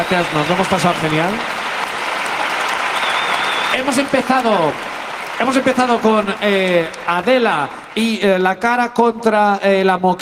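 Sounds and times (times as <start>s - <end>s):
speech: 0.0s - 1.6s, 3.8s - 10.2s
audience applause: 0.0s - 8.6s.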